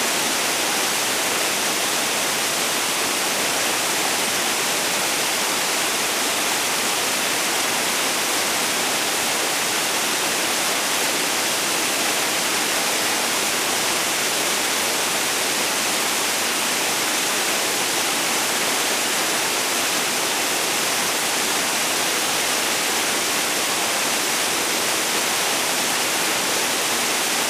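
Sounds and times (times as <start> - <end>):
fountain: 0.0 - 27.4.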